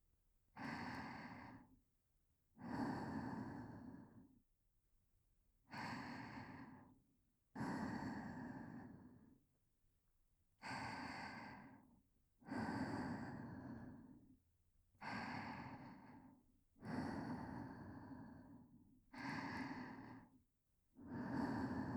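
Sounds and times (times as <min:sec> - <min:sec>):
whispered breathing: 0:00.6 - 0:01.8, 0:02.6 - 0:04.4, 0:05.7 - 0:07.0, 0:07.6 - 0:09.4, 0:10.6 - 0:14.4, 0:15.0 - 0:20.4, 0:21.0 - 0:21.9.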